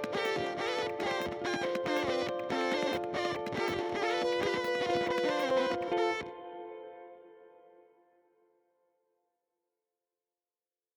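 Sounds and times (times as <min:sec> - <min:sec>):
Pigtronix Space Rip guitar effect pedal sound: 0:00.0 - 0:07.5.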